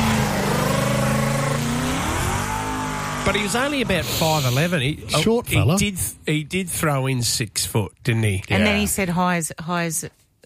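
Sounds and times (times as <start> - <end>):
Mustang car engine revving: 0.0 - 4.6
speech: 3.3 - 10.4.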